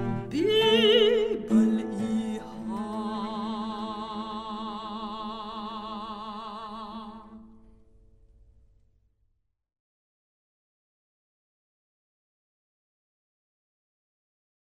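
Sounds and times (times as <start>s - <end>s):
piano: 0.0s - 4.4s
soprano singing: 0.0s - 7.6s
cello: 0.0s - 7.8s.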